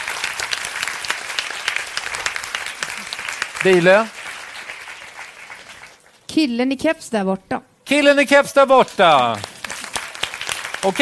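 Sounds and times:
audience applause: 0:00.0 - 0:06.1, 0:08.8 - 0:11.0
speech: 0:03.6 - 0:04.2, 0:06.4 - 0:09.5, 0:10.8 - 0:11.0.

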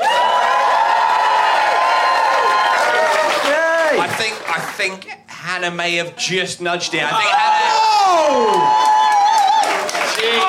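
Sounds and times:
high whoops and shouted voices: 0:00.0 - 0:04.0, 0:07.2 - 0:10.4
crowd cheering and applauding: 0:00.0 - 0:04.9, 0:07.2 - 0:10.4
speech: 0:04.8 - 0:08.9.

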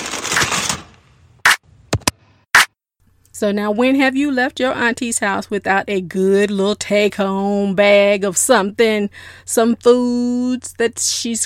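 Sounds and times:
aluminum foil pulled from a roll and torn: 0:00.0 - 0:00.9
speech: 0:03.4 - 0:11.4.

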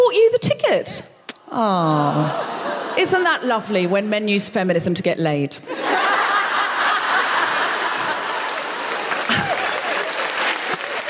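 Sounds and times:
speech: 0:00.7 - 0:06.0
laughter: 0:01.9 - 0:03.9, 0:05.7 - 0:11.0
person applauding: 0:08.0 - 0:11.0.

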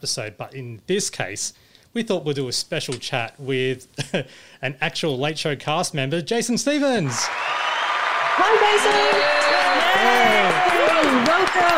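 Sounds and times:
speech: 0:00.0 - 0:07.7, 0:08.4 - 0:11.7
applause: 0:07.1 - 0:11.7.

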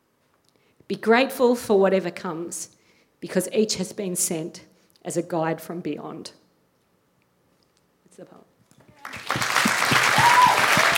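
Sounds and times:
speech: 0:00.9 - 0:06.4, 0:08.2 - 0:08.5
crowd applause: 0:09.0 - 0:10.9.

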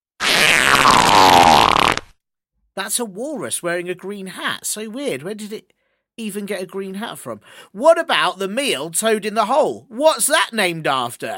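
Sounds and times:
squeezed toy animal farting noise: 0:00.2 - 0:02.2
speech: 0:02.8 - 0:11.3.

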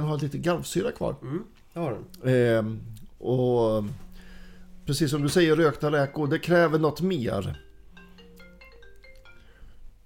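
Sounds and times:
speech: 0:00.1 - 0:04.0, 0:04.9 - 0:07.6
mobile phone ringing with incoming call: 0:05.1 - 0:09.6.

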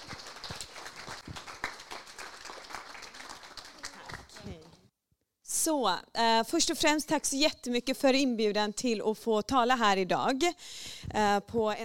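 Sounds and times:
audience applause: 0:00.0 - 0:04.8
speech: 0:05.6 - 0:11.8.

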